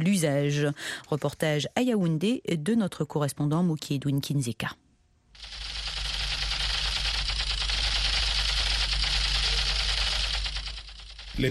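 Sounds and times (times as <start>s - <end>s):
speech: 0.0s - 4.8s
child's toy Kalashnikov gun being fired in Yaoundé: 5.4s - 11.4s
low hum: 5.4s - 11.4s.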